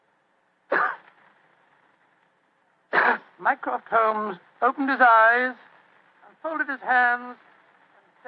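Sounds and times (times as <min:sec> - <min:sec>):
discreet cough: 0:00.7 - 0:01.1, 0:02.9 - 0:03.3
speech: 0:03.4 - 0:05.6, 0:06.4 - 0:07.5.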